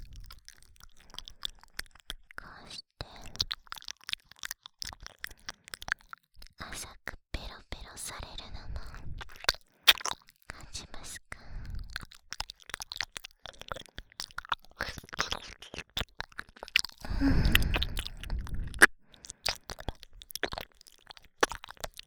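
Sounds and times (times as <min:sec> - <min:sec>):
seductive ear licking: 0:00.0 - 0:06.8, 0:08.9 - 0:22.0
hot breathing: 0:17.0 - 0:19.6.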